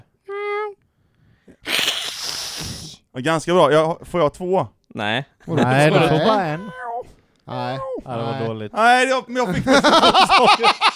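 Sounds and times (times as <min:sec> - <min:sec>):
person imitating a cat hiss: 0:01.6 - 0:03.1
speech: 0:03.2 - 0:06.8, 0:07.5 - 0:10.9
laughter: 0:05.4 - 0:08.7, 0:09.4 - 0:10.9.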